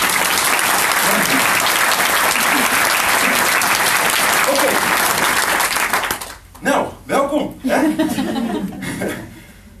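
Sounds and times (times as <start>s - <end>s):
audience applause: 0.0s - 6.5s
laughter: 2.2s - 3.6s, 7.6s - 9.5s.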